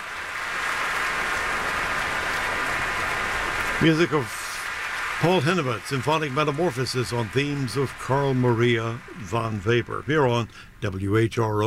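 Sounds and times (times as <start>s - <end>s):
concert audience applause: 0.0s - 10.6s
speech: 3.8s - 4.4s, 5.2s - 11.6s.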